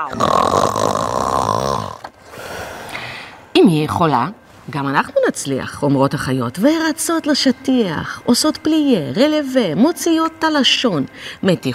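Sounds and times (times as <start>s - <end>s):
speech: 0.0s - 1.5s, 3.6s - 11.7s
voice imitating a cat purring loudly: 0.0s - 2.1s
breathy noise: 0.0s - 3.6s.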